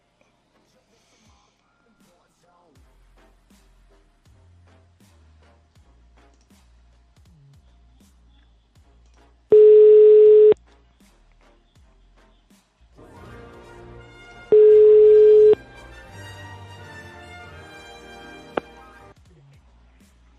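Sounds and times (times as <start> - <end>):
telephone line tone after a number is dialled: 9.5 - 10.6, 14.5 - 15.6.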